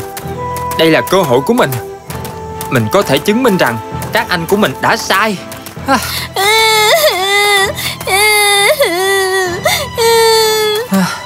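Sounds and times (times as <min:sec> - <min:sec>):
speech: 0:00.8 - 0:01.9, 0:02.7 - 0:06.6
little girl crying in wailing sobs: 0:05.9 - 0:11.1.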